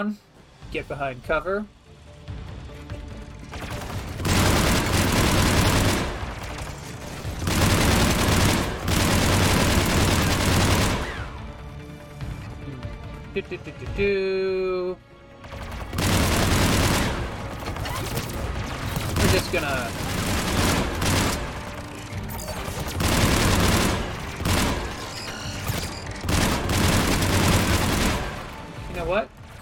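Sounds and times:
speech: 0.0 - 1.8, 13.4 - 15.1, 19.3 - 20.2, 29.1 - 29.4
automatic gunfire in a video game near the Geth base: 3.6 - 11.3, 15.5 - 28.7.

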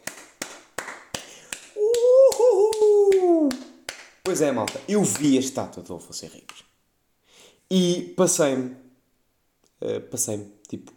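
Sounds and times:
hand claps: 0.0 - 5.6, 6.4 - 6.7
speech: 4.3 - 6.7, 7.7 - 8.8, 9.8 - 10.9.

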